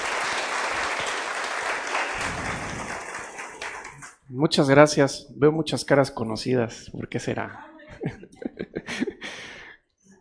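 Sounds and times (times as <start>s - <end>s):
audience applause welcoming a speaker to a talk on privacy: 0.0s - 4.2s
speech: 4.3s - 8.2s
laughter: 7.9s - 9.6s.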